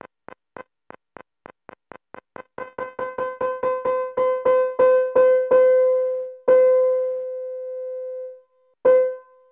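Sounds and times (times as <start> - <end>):
piano: 2.7 - 9.5.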